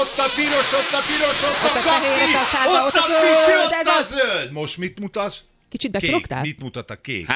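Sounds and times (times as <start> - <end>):
person blowing hard into a breath-measuring device: 0.0 - 3.7
speech: 0.1 - 7.3.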